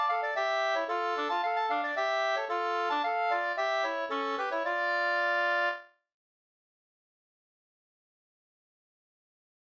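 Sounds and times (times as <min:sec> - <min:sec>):
two-part polska folk dance tune: 0:00.0 - 0:05.8.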